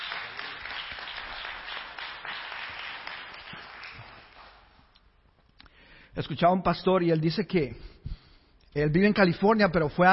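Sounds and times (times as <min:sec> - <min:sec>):
audience applauding: 0:00.0 - 0:04.8
speech: 0:06.2 - 0:07.9, 0:08.8 - 0:10.1.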